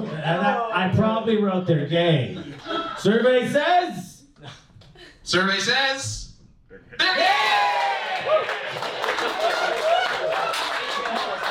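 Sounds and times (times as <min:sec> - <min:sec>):
speech: 0:00.3 - 0:04.6, 0:05.3 - 0:09.9
crowd cheering: 0:07.0 - 0:11.4
audience applause: 0:07.3 - 0:11.4.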